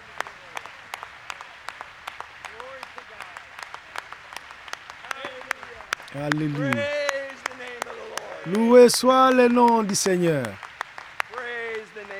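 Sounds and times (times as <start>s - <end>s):
church audience applauding: 0.0s - 12.1s
laughter: 6.2s - 6.9s, 7.9s - 10.6s
speech: 6.2s - 7.0s, 8.4s - 10.6s.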